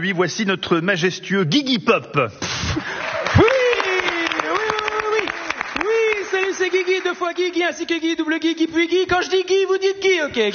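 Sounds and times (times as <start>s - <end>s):
speech: 0.0s - 3.5s, 6.6s - 10.5s
studio audience applause: 2.8s - 7.5s.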